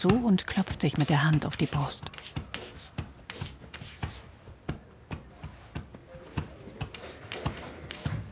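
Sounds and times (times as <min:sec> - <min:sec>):
speech: 0:00.0 - 0:02.7
chalk scratching and tapping on a board: 0:00.1 - 0:04.3, 0:06.3 - 0:08.2.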